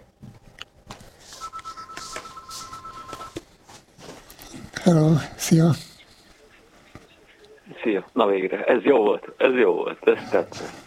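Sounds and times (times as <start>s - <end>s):
telephone ringing: 1.3s - 3.4s
speech: 4.8s - 5.9s, 7.9s - 10.8s.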